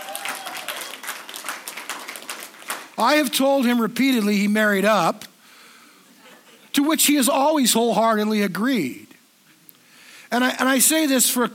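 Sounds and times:
audience applause: 0.0 - 3.0
speech: 3.0 - 5.3, 6.8 - 9.1, 10.3 - 11.5.

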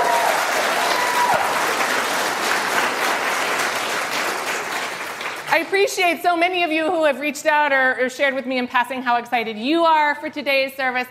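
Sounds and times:
audience clapping: 0.0 - 6.0
speech: 5.6 - 11.0.

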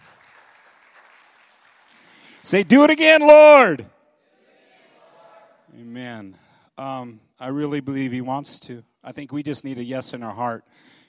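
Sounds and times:
audience applause: 0.0 - 2.6
speech: 2.4 - 3.9, 5.8 - 10.9.

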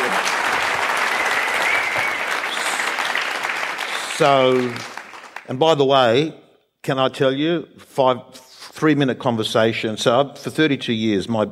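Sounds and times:
audience round of applause: 0.0 - 5.5
speech: 4.2 - 4.9, 5.5 - 11.4.

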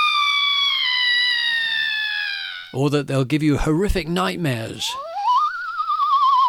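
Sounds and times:
Aztec death whistle scream: 0.0 - 2.8, 5.0 - 6.4
speech: 2.7 - 5.1.

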